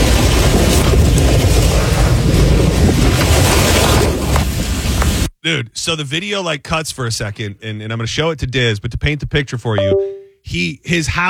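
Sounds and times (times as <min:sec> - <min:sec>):
tornado roaring: 0:00.0 - 0:05.0
speech: 0:05.5 - 0:11.2.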